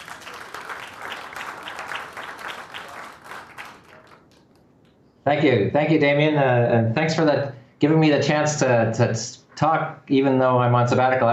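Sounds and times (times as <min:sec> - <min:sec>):
virtual round of applause: 0:00.0 - 0:04.8
speech: 0:05.2 - 0:11.3.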